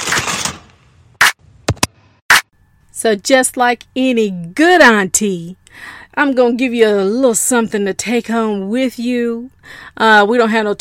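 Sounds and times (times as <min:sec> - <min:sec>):
aluminum foil crinkling and being pulled from the roll: 0:00.0 - 0:00.7
speech: 0:03.0 - 0:10.7.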